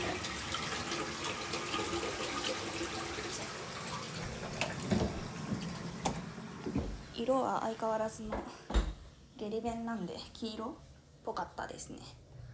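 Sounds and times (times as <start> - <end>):
toilet flushing: 0.0 - 7.2
speech: 7.2 - 8.6, 9.4 - 12.2.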